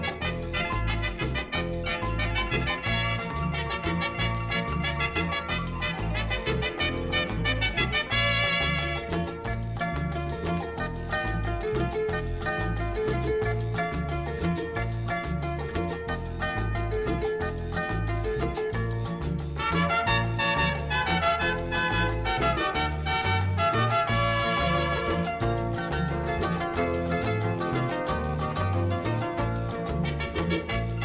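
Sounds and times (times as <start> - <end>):
Paraguayan harp playing: 0.0 - 31.0.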